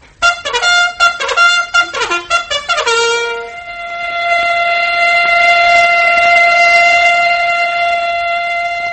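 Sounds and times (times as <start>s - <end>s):
bugle call: 0.2s - 8.9s
factory whistle blast: 0.2s - 8.9s.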